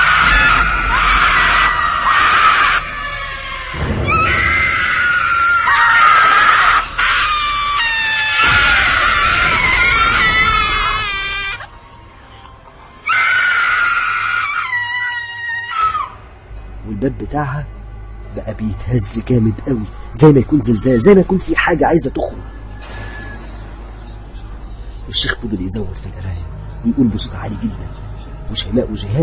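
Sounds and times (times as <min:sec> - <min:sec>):
terrifying scream: 0:00.0 - 0:11.7, 0:13.0 - 0:16.2
speech: 0:17.0 - 0:17.8, 0:18.4 - 0:22.5, 0:25.1 - 0:29.2.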